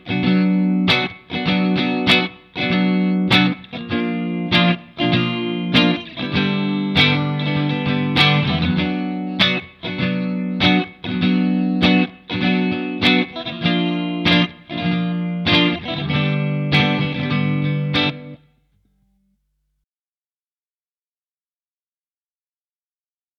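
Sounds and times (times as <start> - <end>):
Fender electric guitar played clean: 0.0 - 18.5.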